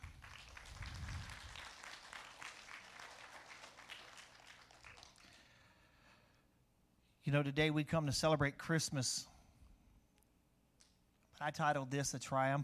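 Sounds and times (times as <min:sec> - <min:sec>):
crowd clapping: 0:00.0 - 0:05.6
speech: 0:07.3 - 0:09.3, 0:11.4 - 0:12.6.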